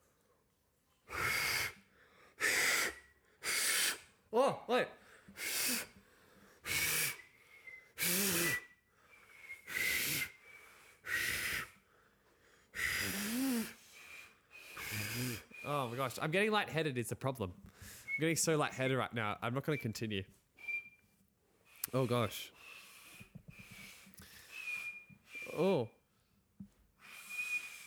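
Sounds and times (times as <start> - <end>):
failed attempt to whistle: 1.1 - 1.8, 2.4 - 4.1, 5.4 - 6.0, 6.6 - 11.8, 12.8 - 16.2, 17.9 - 18.5, 20.6 - 21.1, 22.6 - 26.0, 27.0 - 27.8
speech: 4.3 - 5.5, 16.1 - 20.4, 21.9 - 22.6, 25.6 - 26.0.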